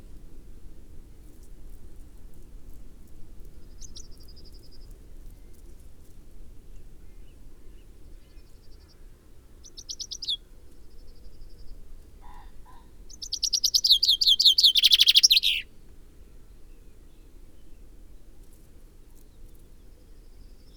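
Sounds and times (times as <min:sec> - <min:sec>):
common chaffinch singing: 0:09.6 - 0:10.4, 0:13.1 - 0:15.7.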